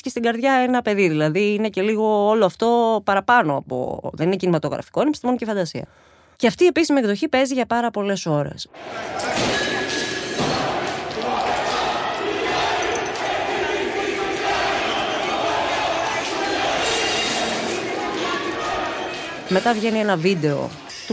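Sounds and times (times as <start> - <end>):
speech: 0.0 - 9.7, 19.5 - 21.1
riot crowd roaring and shouting: 8.8 - 21.1.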